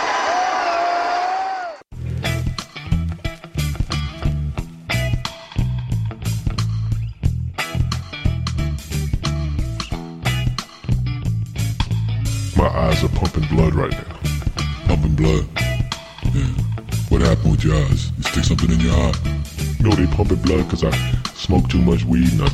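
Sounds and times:
crowd cheering: 0:00.0 - 0:01.9
bass-heavy beat with steady thumping drums: 0:02.0 - 0:13.5, 0:14.2 - 0:22.5
speech: 0:13.5 - 0:14.3, 0:15.0 - 0:15.6, 0:17.3 - 0:22.5.

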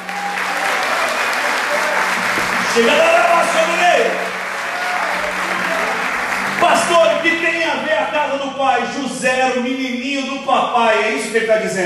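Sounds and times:
church congregation applauding: 0:00.0 - 0:08.8
speech: 0:02.8 - 0:04.3, 0:06.6 - 0:11.8.

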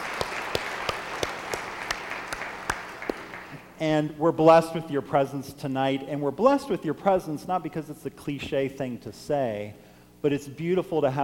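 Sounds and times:
crowd applauding: 0:00.0 - 0:03.6
speech: 0:03.8 - 0:11.2.

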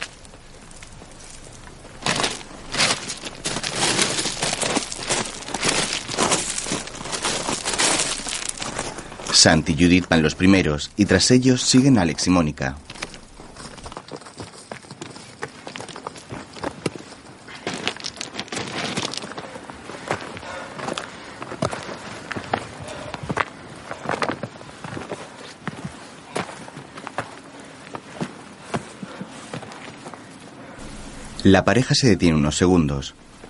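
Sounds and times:
footsteps of several people hiking up a rocky slope: 0:00.0 - 0:31.4
speech: 0:09.4 - 0:12.9, 0:31.5 - 0:33.3.

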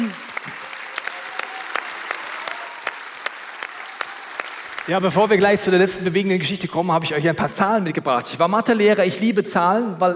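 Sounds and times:
audience applause: 0:00.0 - 0:06.1
speech: 0:04.9 - 0:10.1.

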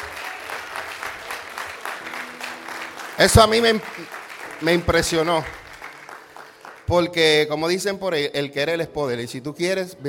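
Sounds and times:
audience clapping: 0:00.0 - 0:07.3
speech: 0:03.2 - 0:05.6, 0:06.9 - 0:10.0.

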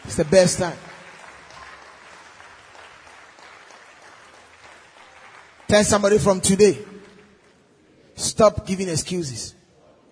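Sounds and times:
audience clapping: 0:00.0 - 0:07.7
speech: 0:00.2 - 0:00.9, 0:05.7 - 0:06.9, 0:08.2 - 0:09.6.

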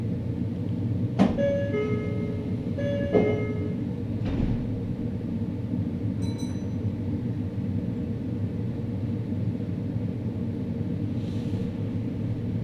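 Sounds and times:
Meitetsu Inuyama and Hiromi line train rumble: 0:00.2 - 0:12.6.

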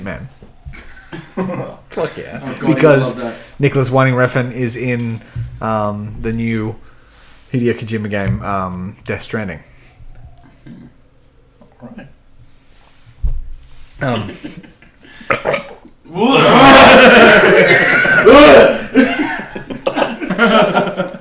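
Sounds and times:
speech: 0:00.0 - 0:00.4, 0:01.4 - 0:06.9, 0:07.5 - 0:09.7, 0:11.8 - 0:12.2, 0:14.0 - 0:14.7, 0:15.4 - 0:19.2
laughter: 0:00.7 - 0:03.3, 0:14.0 - 0:21.2
wet burp: 0:10.6 - 0:11.0, 0:15.3 - 0:16.0.

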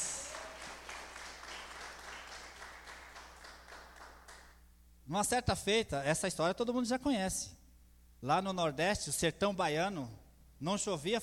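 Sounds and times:
audience applauding: 0:00.0 - 0:04.5
speech: 0:05.1 - 0:07.6, 0:08.2 - 0:11.2.

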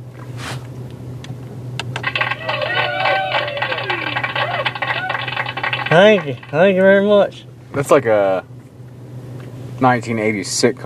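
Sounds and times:
rooster crowing: 0:02.1 - 0:05.6
speech: 0:06.0 - 0:08.5, 0:09.8 - 0:10.8.

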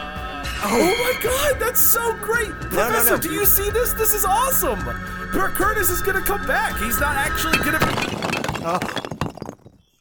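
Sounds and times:
speech: 0:00.6 - 0:09.1
pieces clattering: 0:06.9 - 0:09.9
figure knocked over, breaking into pieces: 0:07.4 - 0:09.9.

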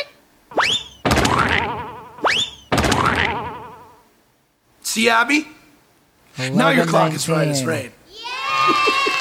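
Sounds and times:
cartoon boing effect from hammer: 0:00.5 - 0:04.0
speech: 0:05.0 - 0:05.6, 0:06.4 - 0:08.0, 0:08.7 - 0:09.1.

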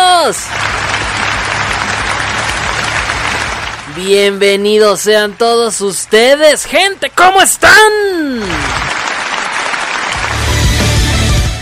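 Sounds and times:
audience applause: 0:00.0 - 0:04.0, 0:08.3 - 0:11.5
speech: 0:00.3 - 0:00.8, 0:04.0 - 0:08.8.

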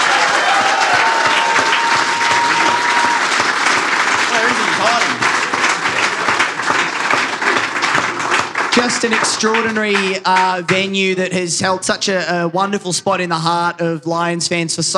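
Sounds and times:
sustained applause from a large audience: 0:00.0 - 0:11.1
speech: 0:08.9 - 0:14.9.

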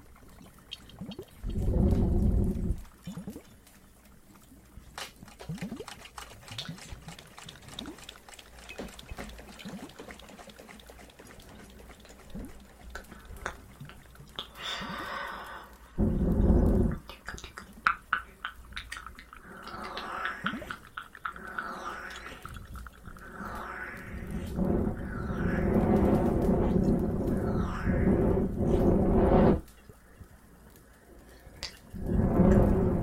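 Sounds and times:
fireplace crackling: 0:00.0 - 0:33.0
water trickling and dripping in a cave: 0:00.0 - 0:33.0.

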